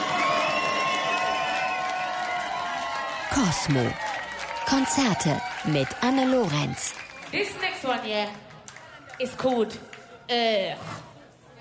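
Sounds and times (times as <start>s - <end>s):
concert crowd cheering and whooping: 0.0s - 7.8s
speech: 3.3s - 8.5s, 9.2s - 11.0s.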